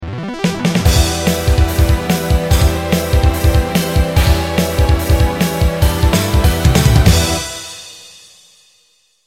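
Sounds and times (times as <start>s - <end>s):
tango TV jingle: 0.9s - 8.2s.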